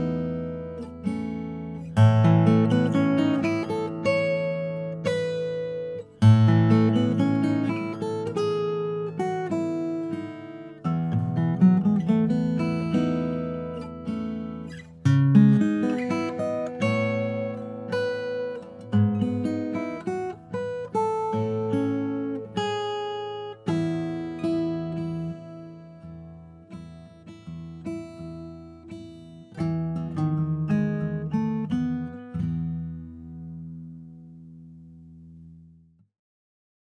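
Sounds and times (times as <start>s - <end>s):
grand 00 cutaway figured acacia guitar: 0.0s - 36.1s.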